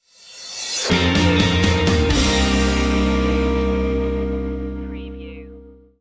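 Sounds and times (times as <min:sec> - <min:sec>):
sugar coated stinger music cue: 0:00.8 - 0:05.4.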